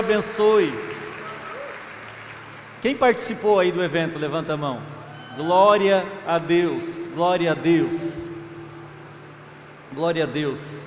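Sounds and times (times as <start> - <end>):
speech: 0.0 - 1.0, 2.8 - 8.2, 9.9 - 10.8
applause for volunteers: 0.0 - 3.3.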